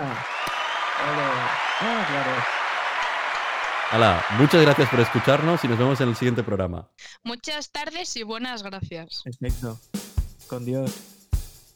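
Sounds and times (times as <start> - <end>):
applause: 0.0 - 6.6
speech: 1.0 - 2.6, 3.9 - 11.1.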